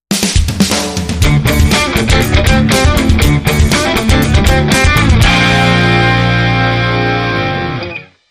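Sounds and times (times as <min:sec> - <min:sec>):
heavy funk music: 0:00.1 - 0:08.2.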